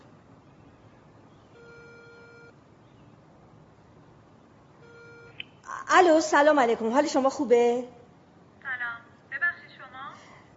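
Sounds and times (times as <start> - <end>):
phone ringback tone: 1.6 - 2.5, 4.8 - 5.4
speech: 5.8 - 8.0.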